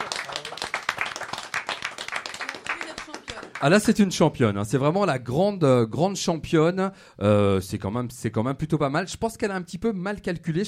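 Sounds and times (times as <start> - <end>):
applause: 0.0 - 3.9
speech: 3.6 - 10.6.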